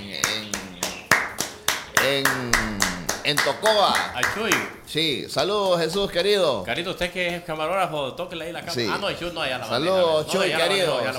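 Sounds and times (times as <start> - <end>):
people clapping: 0.0 - 6.4
speech: 2.1 - 2.6, 3.3 - 11.1.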